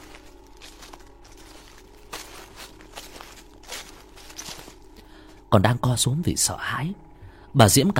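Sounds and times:
footsteps crunching and rustling through dry leaves beside a house: 0.0s - 5.5s
low constant hum: 0.0s - 7.9s
speech: 5.5s - 7.9s.

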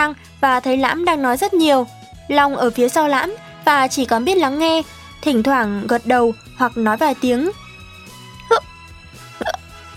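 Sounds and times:
speech: 0.0s - 7.6s, 8.5s - 8.7s
person hiccuping: 8.5s - 8.7s, 9.4s - 9.7s.

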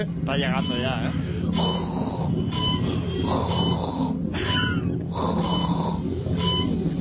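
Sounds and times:
speech: 0.0s - 1.7s, 3.3s - 4.0s
heavy mechanical respirator breathing: 0.6s - 6.9s.

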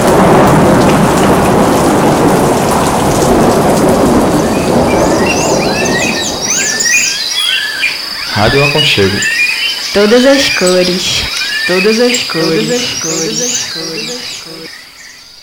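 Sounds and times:
thunder: 0.0s - 7.1s
rain: 0.0s - 15.4s
speech: 8.4s - 9.4s, 10.0s - 14.3s.

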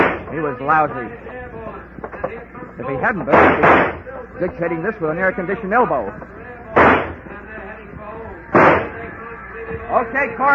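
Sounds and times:
speech: 0.4s - 6.4s, 9.9s - 10.5s
gunshots in an old-time radio detective drama: 3.3s - 4.0s, 6.8s - 7.3s, 8.5s - 9.0s.

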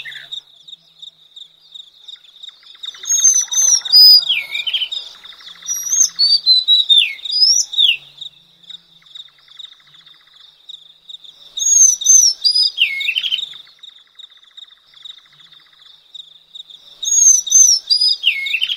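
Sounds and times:
Madagascar magpie-robin singing: 1.6s - 10.5s, 11.6s - 13.8s, 17.0s - 18.7s.

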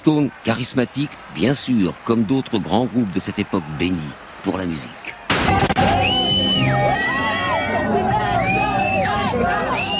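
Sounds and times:
speech: 0.0s - 6.4s
crowd of a few hundred fans screaming in ecstasy as a helicopter lands: 0.0s - 9.9s.

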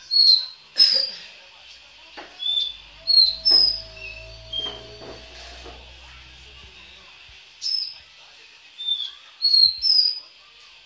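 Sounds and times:
Belgian canary singing: 2.2s - 7.0s.

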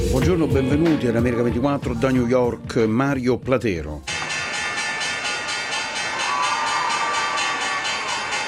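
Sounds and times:
speech: 0.2s - 4.1s
Wall Street closing bell ringing: 4.1s - 8.4s
crowd cheering and shouting: 5.2s - 8.4s.

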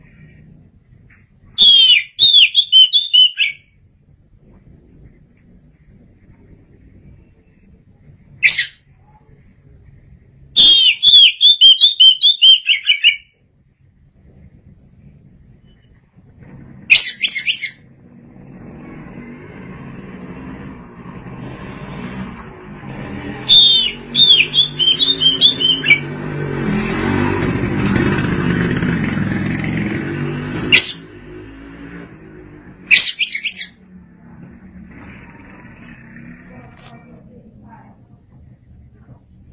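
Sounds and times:
Oriental magpie-robin singing: 1.6s - 3.7s, 8.4s - 8.8s, 10.6s - 13.3s, 16.9s - 17.8s, 23.4s - 26.1s, 30.7s - 31.1s, 32.9s - 33.8s
heavy rumbling noise: 3.6s - 10.6s, 13.4s - 32.9s, 33.7s - 39.5s.

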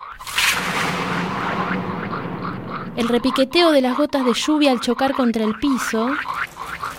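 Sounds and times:
thunder crack and rumble: 0.1s - 5.3s
speech: 3.0s - 6.4s.

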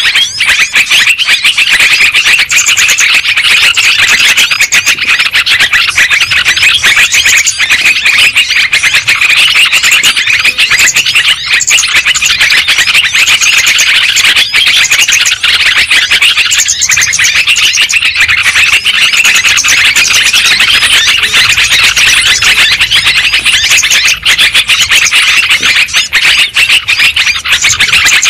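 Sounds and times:
lovebirds chattering: 0.0s - 28.2s.

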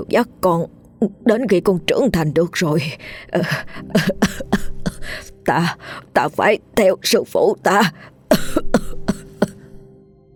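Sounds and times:
speech: 0.0s - 8.9s
old man coughing: 8.3s - 9.7s.

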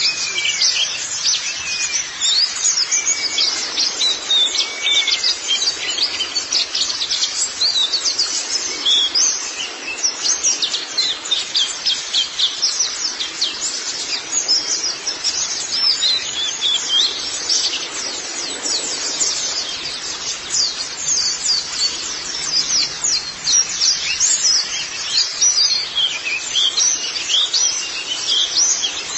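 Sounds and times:
white-eye twittering: 0.0s - 29.1s.

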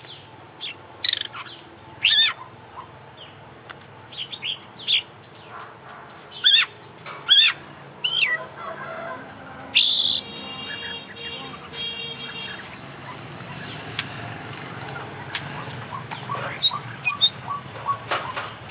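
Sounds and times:
Oriental magpie-robin song: 0.1s - 2.5s, 4.1s - 5.1s, 6.4s - 6.7s, 7.3s - 8.4s, 9.8s - 11.3s, 16.2s - 18.0s.

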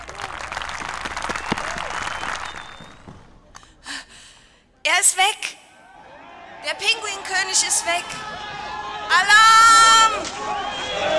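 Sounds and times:
crowd applause for a king opening the annual festivities: 0.0s - 3.5s, 6.2s - 11.1s
murmur of voices: 5.8s - 11.1s
speech: 6.7s - 11.1s.

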